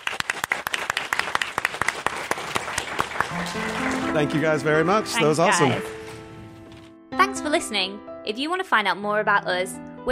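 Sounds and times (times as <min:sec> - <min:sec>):
audience round of applause: 0:00.0 - 0:05.9
speech: 0:03.4 - 0:06.0, 0:07.4 - 0:10.1.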